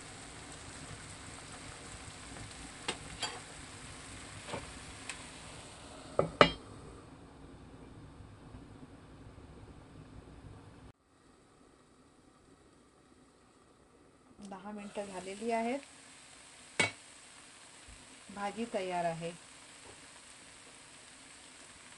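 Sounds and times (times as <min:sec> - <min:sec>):
spinach vegetable dish sizzling in a covered pan: 0:00.0 - 0:06.6, 0:14.4 - 0:21.9
speech: 0:14.6 - 0:15.9, 0:18.4 - 0:19.5.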